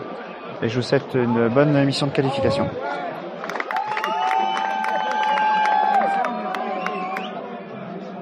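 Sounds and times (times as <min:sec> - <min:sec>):
speech: 0:00.6 - 0:03.1
large crowd cheering and applauding: 0:02.3 - 0:07.4
shrill whistles: 0:06.7 - 0:07.4.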